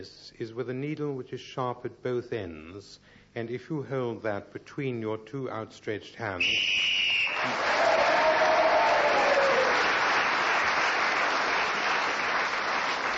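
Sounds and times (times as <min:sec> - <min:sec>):
speech: 0:00.0 - 0:08.1
audience whoops: 0:06.7 - 0:10.0
studio audience cheering and applauding: 0:06.8 - 0:13.1.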